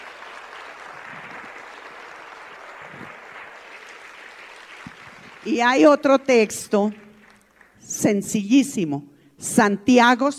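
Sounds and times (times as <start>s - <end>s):
audience applause: 0.0s - 5.9s, 6.8s - 7.8s
speech: 5.4s - 7.0s, 7.9s - 10.3s.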